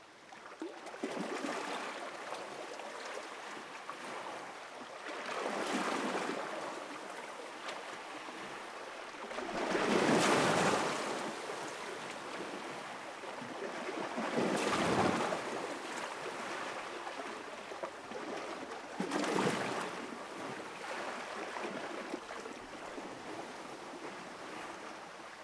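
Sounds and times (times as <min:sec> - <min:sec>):
water: 0:00.0 - 0:25.4.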